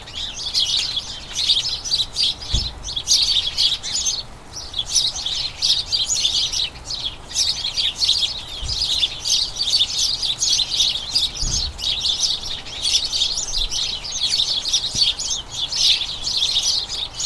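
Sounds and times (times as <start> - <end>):
house sparrows chirping as a flock: 0.0 - 17.2
low thump: 2.5 - 3.0.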